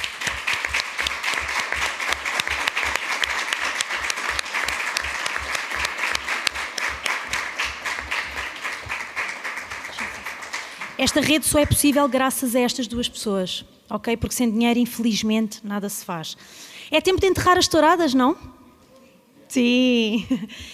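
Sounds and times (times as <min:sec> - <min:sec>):
audience applause: 0:00.0 - 0:11.4
speech: 0:11.0 - 0:18.5, 0:19.6 - 0:20.7.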